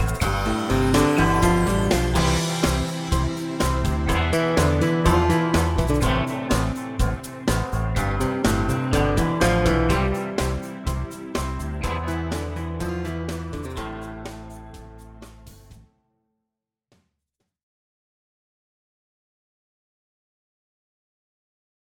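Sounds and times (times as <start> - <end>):
tango music: 0.0 - 15.7.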